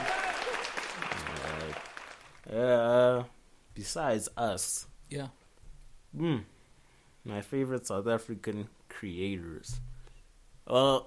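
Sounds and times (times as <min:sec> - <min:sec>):
person cheering: 0:00.0 - 0:01.9
round of applause: 0:00.0 - 0:02.5
speech: 0:02.5 - 0:05.4, 0:06.1 - 0:06.6, 0:07.2 - 0:09.9, 0:10.6 - 0:11.0.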